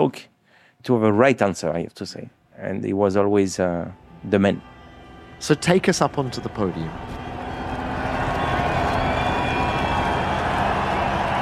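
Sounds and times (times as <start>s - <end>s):
speech: 0.0s - 4.7s, 5.4s - 7.2s
race crowd roaring and cheering: 4.8s - 11.4s.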